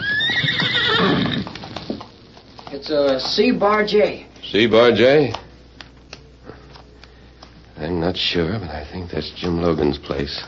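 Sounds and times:
pony neighing: 0.0 - 1.8
speech: 2.8 - 5.4, 8.1 - 10.4.

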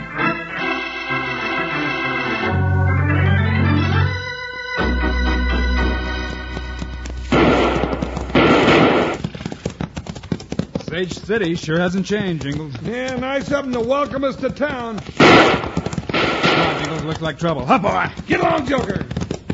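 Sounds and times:
loud dramatic orchestral music: 0.0 - 6.9
revolver gunfire in a western frontier-town shootout: 7.3 - 9.3, 15.2 - 17.1
speech: 11.0 - 15.7, 17.0 - 19.2.

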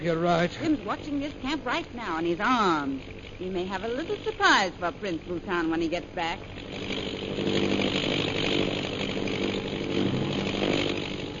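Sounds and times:
speech: 0.0 - 7.1
airplane engine of a descending plane: 0.0 - 11.3.

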